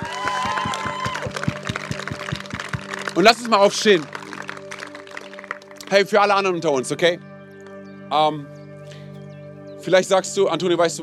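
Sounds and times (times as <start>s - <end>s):
audience applause: 0.0s - 5.8s
speech: 3.2s - 4.2s, 5.9s - 7.3s, 8.1s - 8.5s, 9.8s - 11.0s.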